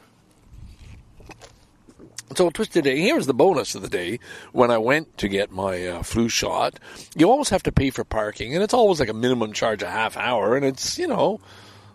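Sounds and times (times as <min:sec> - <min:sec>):
person sipping coffee: 0:00.3 - 0:02.3
speech: 0:02.3 - 0:11.7.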